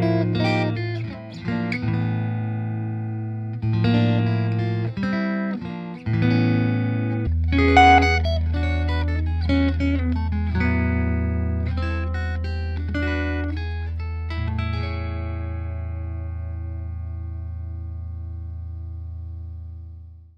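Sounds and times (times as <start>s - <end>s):
clean bass amp tone: 0.0s - 20.3s.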